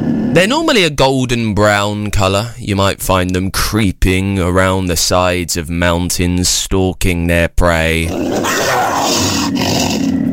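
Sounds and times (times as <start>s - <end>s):
mountain lion (puma) roaring: 0.0s - 0.6s, 8.1s - 10.3s
speech: 0.4s - 10.1s.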